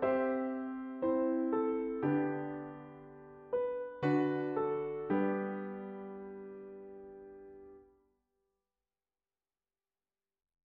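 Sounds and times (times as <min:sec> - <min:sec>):
piano: 0:00.0 - 0:08.0.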